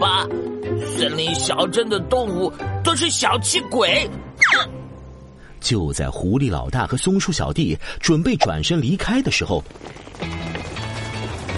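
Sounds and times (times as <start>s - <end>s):
speech: 1.0s - 4.8s, 5.6s - 10.5s
footsteps approaching from all sides: 9.6s - 11.5s.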